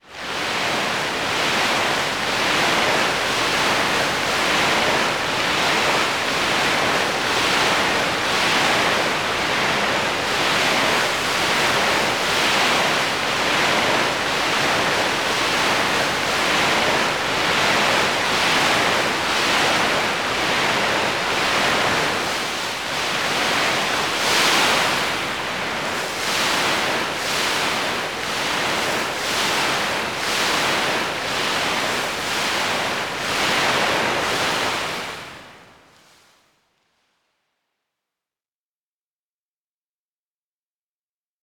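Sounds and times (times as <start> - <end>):
sea waves on a shore: 0.0 - 36.5.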